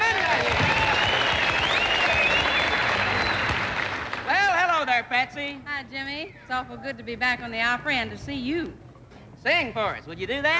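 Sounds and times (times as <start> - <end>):
audience applause at a country music show welcoming a guest star: 0.0 - 4.6
speech: 5.1 - 8.8, 9.4 - 10.5.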